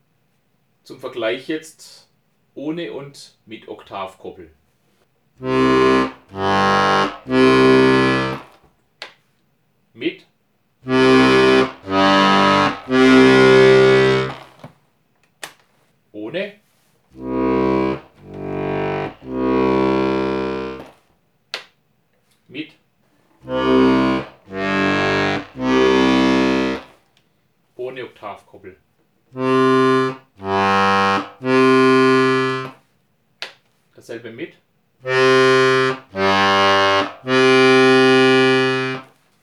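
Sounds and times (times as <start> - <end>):
Scandalli accordion bass side: 5.4 - 8.6, 10.8 - 14.6, 17.2 - 21.0, 23.4 - 27.0, 29.3 - 32.8, 35.0 - 39.1.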